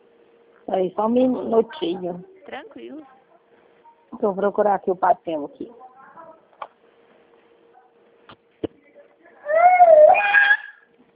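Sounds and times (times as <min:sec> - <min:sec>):
speech: 0:00.7 - 0:03.2, 0:04.2 - 0:05.8
child screaming: 0:09.5 - 0:10.9.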